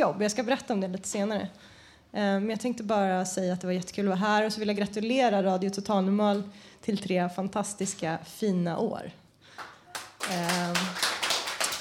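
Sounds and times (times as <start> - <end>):
speech: 0.0 - 9.7, 10.3 - 11.0
audience applause: 9.9 - 11.7.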